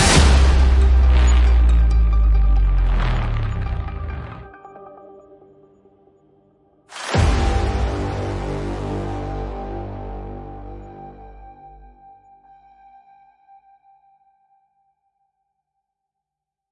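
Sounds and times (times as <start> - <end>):
dark movie trailer music ringtone: 0.0 - 5.8, 7.1 - 12.0.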